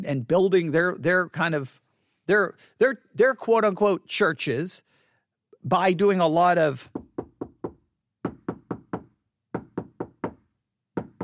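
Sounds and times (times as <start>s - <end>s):
speech: 0.0s - 4.9s, 5.6s - 7.1s
knocking on a door: 6.9s - 11.2s.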